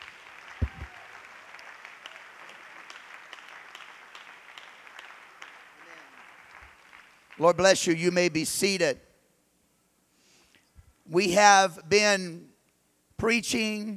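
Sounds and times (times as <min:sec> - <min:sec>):
audience clapping hands: 0:00.0 - 0:07.8
speech: 0:07.4 - 0:09.0, 0:11.2 - 0:12.5, 0:13.2 - 0:13.9.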